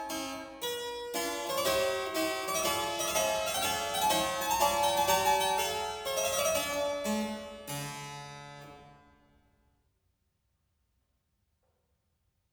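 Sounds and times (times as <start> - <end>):
keyboard sonata: 0.0 - 9.2.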